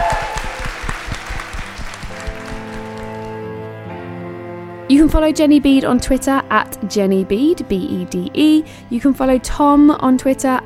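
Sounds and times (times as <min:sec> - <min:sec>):
audience applause: 0:00.0 - 0:03.4
speech: 0:04.9 - 0:10.6.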